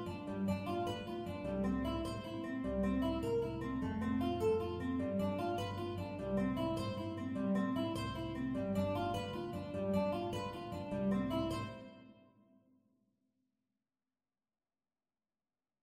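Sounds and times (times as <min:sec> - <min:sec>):
tenor ukulele playing: 0:00.0 - 0:12.0.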